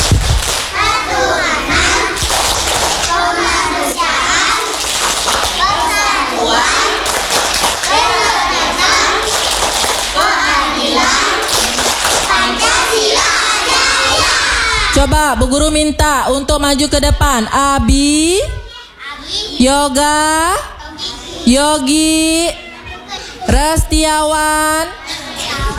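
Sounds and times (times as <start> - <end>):
children clapping a rhythmic routine: 0.0 - 14.4
children chanting a clapping routine in unison: 0.7 - 15.0, 25.0 - 25.7
speech: 15.0 - 18.6, 19.3 - 20.7, 21.4 - 22.6, 23.5 - 25.0.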